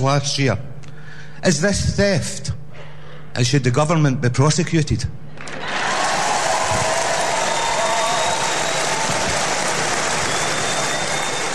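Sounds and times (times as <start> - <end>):
speech: 0.0 - 0.7, 1.4 - 2.6, 3.4 - 5.7
raucous applause: 5.4 - 11.5.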